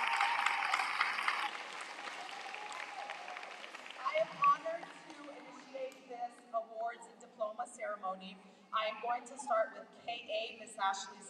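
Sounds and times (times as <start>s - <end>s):
applause: 0.0s - 6.0s
speech: 8.0s - 11.2s.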